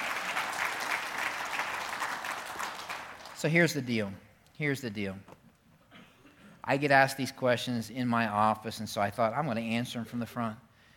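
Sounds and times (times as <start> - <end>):
church audience clapping: 0.0 - 3.5
speech: 3.4 - 5.4, 6.6 - 10.6.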